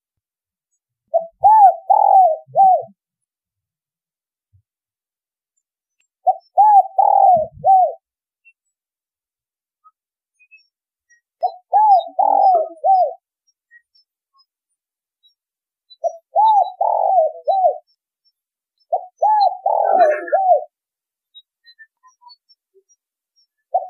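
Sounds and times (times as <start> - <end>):
spotted dove cooing: 1.1 - 2.9, 6.3 - 8.0, 11.4 - 13.2, 16.0 - 17.9, 18.9 - 20.7.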